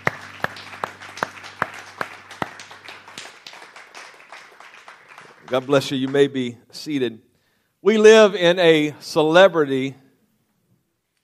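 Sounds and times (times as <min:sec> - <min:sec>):
audience clapping hands in praise: 0:00.0 - 0:06.6
speech: 0:05.5 - 0:10.0.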